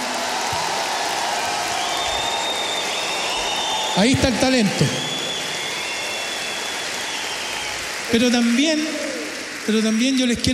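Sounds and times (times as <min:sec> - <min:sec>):
audience applause: 0:00.0 - 0:10.5
speech: 0:04.0 - 0:05.0, 0:08.1 - 0:10.5.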